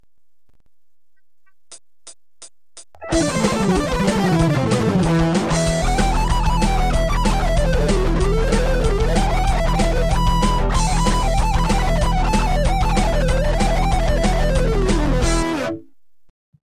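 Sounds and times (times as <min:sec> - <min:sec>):
instrumental solo: 0:03.0 - 0:15.8.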